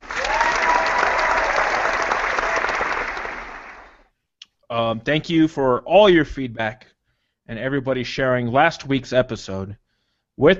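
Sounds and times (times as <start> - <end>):
audience applause: 0.0 - 4.1
speech: 4.9 - 6.9, 7.5 - 9.8, 10.4 - 10.5.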